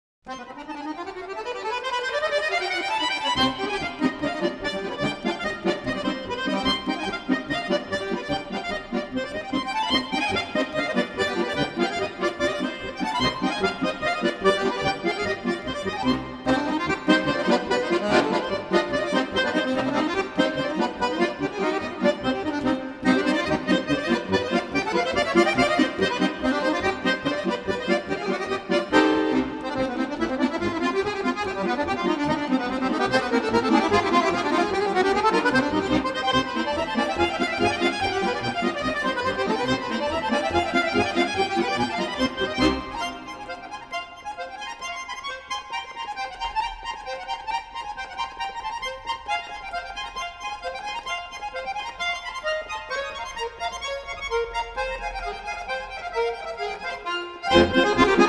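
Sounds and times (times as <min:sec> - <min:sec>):
polka music: 0:00.2 - 0:58.2.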